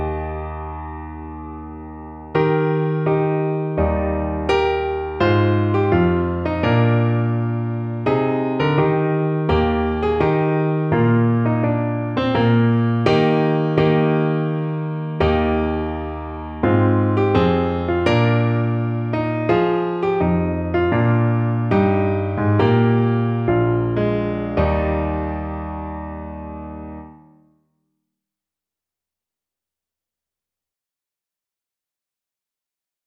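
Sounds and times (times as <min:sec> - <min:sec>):
slow piano: 0:00.0 - 0:27.4.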